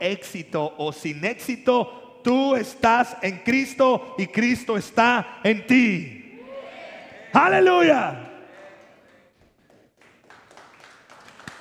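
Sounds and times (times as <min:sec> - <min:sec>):
speech: 0:00.0 - 0:06.2, 0:07.3 - 0:08.3
audience applause: 0:08.4 - 0:11.6.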